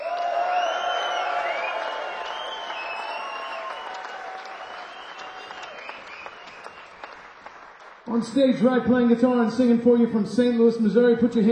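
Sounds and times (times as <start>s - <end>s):
scattered whoops: 0.0s - 7.2s
concert crowd applauding and cheering during band introductions: 0.0s - 8.9s
speech: 8.1s - 11.5s.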